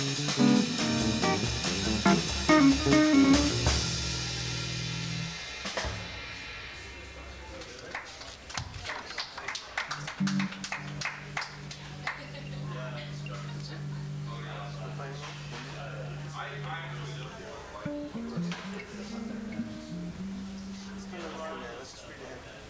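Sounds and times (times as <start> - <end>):
blues improvisation: 0.0 - 5.4, 10.0 - 21.7.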